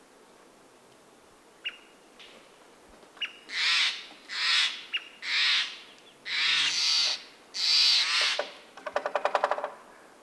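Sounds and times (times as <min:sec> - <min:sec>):
American Three-toed Woodpecker Picoides dorsalis: 0:03.2 - 0:09.8.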